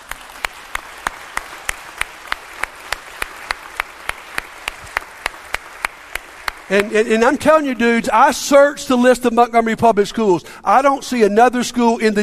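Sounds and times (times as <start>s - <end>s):
audience clapping: 0.0s - 7.8s
speech: 6.7s - 12.2s.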